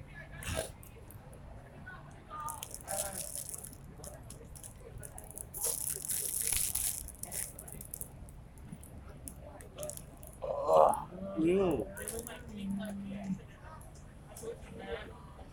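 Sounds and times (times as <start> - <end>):
faint steady low hum: 0.0 - 15.5
short voiced burp: 10.4 - 11.3.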